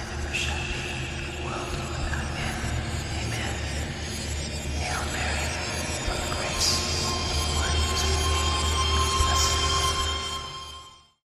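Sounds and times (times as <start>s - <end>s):
reversed prelude music: 0.1s - 11.0s.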